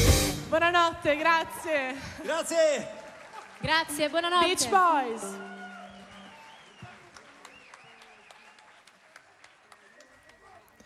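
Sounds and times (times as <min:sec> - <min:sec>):
speech: 0:00.6 - 0:03.0, 0:03.6 - 0:05.5
audience applause at a concert at Teatro Alighieri in Ravenna: 0:02.2 - 0:10.8.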